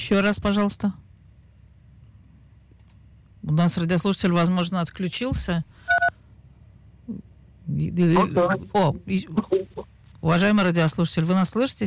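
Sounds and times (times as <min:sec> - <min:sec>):
speech: 0:00.0 - 0:01.1, 0:03.4 - 0:05.9, 0:07.1 - 0:11.8
telephone keypad tone from a caller accidentally pressing a button: 0:05.9 - 0:06.1.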